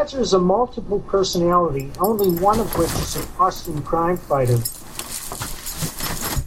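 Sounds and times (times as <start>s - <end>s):
speech: 0.0s - 5.5s
dog padding about: 1.9s - 6.4s
things being knocked over by a dog: 2.1s - 6.4s.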